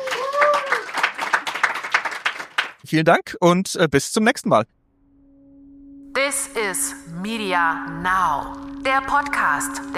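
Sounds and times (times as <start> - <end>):
audience applause: 0.0 - 2.8
speech: 2.9 - 4.8, 6.6 - 9.9.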